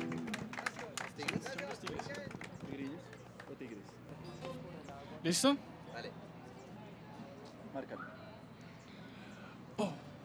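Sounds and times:
audience applause: 0.0s - 3.6s
speech: 1.2s - 6.4s, 7.7s - 8.2s.

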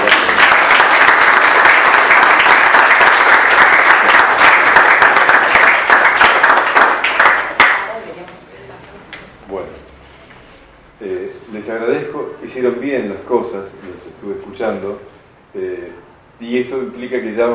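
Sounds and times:
applause from class participants: 0.0s - 8.0s
speech: 12.4s - 17.5s.

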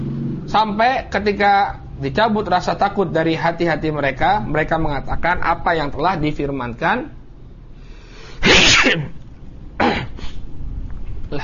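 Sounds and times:
speech: 0.5s - 7.2s, 8.5s - 9.2s
soft bursts of breath or sniffing: 7.8s - 8.8s, 10.1s - 10.5s
person sneezing: 8.4s - 9.2s, 9.8s - 10.4s.

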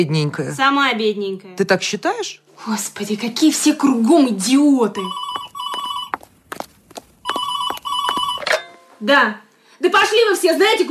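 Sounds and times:
speech: 0.0s - 5.2s, 9.0s - 10.8s
telephone ringing with shrill electronic tones: 5.0s - 6.2s, 7.2s - 8.9s
sharp knocks or footsteps: 5.1s - 8.6s.

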